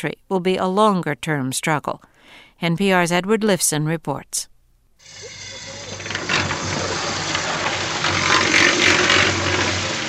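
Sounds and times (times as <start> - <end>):
speech: 0.0 - 5.4
cement mixer running at a rebuilding site in Bosnia: 5.0 - 10.0
men shoveling rubble: 5.0 - 10.0
water pouring into a cement mixer: 5.0 - 10.0.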